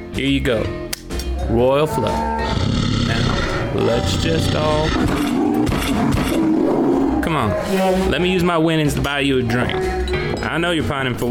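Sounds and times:
speech: 0:00.2 - 0:00.8, 0:01.5 - 0:02.8, 0:03.8 - 0:11.2
bear roaring: 0:01.9 - 0:08.1.

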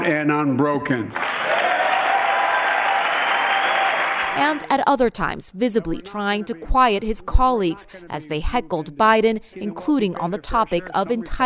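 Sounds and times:
speech: 0:00.0 - 0:01.3, 0:04.4 - 0:11.4
Democrats applauding a speech: 0:01.1 - 0:04.7.

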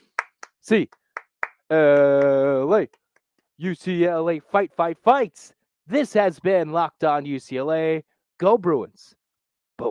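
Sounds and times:
rhythmic eight-clap cheer hand clapping: 0:00.0 - 0:02.8
speech: 0:00.7 - 0:01.0, 0:01.7 - 0:03.0, 0:03.6 - 0:09.2, 0:09.8 - 0:09.9.

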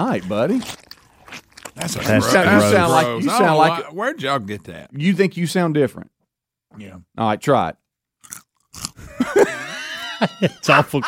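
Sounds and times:
speech: 0:00.0 - 0:09.6, 0:10.2 - 0:11.0
loud crunchy chewing of a snack: 0:00.2 - 0:02.3, 0:08.2 - 0:09.1
laughter: 0:09.1 - 0:11.0.

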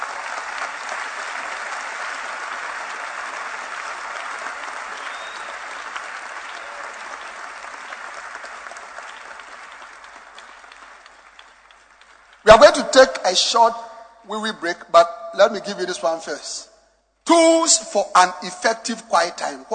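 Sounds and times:
audience clapping in praise: 0:00.0 - 0:13.2
speech: 0:12.5 - 0:16.7, 0:17.3 - 0:19.7.

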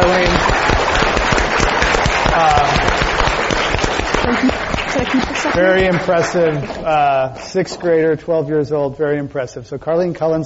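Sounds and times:
audience applause: 0:00.0 - 0:07.3
speech: 0:05.1 - 0:10.4.

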